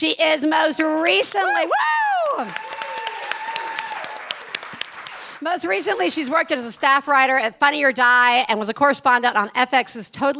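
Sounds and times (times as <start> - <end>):
speech: 0.0 - 2.8, 5.4 - 10.3
audience applause welcoming a guest comedian at a live SF Sketchfest show: 0.5 - 6.0.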